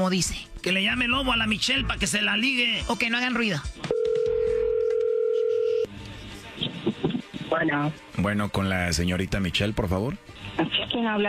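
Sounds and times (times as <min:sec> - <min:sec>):
speech: 0:00.0 - 0:03.9, 0:07.5 - 0:11.2
phone line dial tone: 0:03.9 - 0:05.9.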